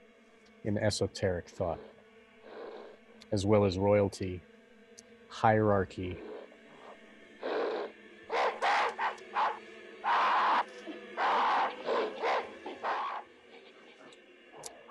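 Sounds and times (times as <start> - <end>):
speech: 0.6 - 1.9, 3.3 - 4.5, 5.3 - 6.3
bee-like buzzing chorus of human voices: 0.7 - 4.4, 5.3 - 14.8.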